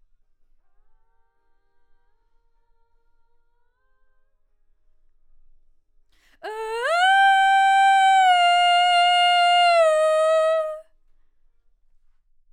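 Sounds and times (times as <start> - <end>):
vocal: 6.4 - 10.8.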